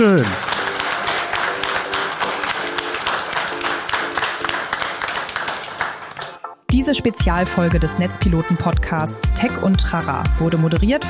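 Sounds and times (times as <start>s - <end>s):
speech: 0.0s - 0.4s, 6.9s - 11.0s
audience applause: 0.0s - 6.6s.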